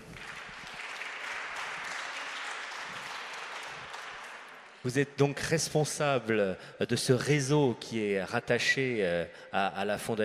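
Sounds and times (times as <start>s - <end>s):
audience applause: 0.0s - 4.9s
speech: 4.8s - 10.2s.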